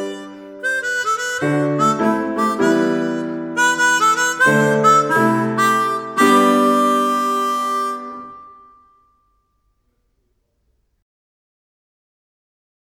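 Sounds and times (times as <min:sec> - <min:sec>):
solo instrument and piano: 0:00.0 - 0:09.4.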